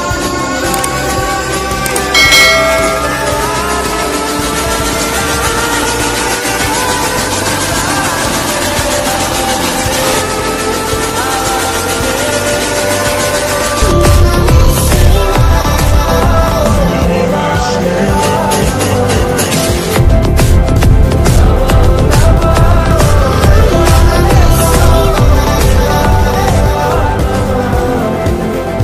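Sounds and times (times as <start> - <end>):
lofi music: 0.2 - 28.8.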